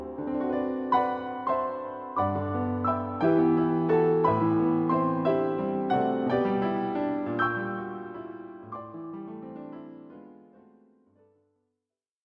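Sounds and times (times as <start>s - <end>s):
waltz music: 0.0s - 9.6s.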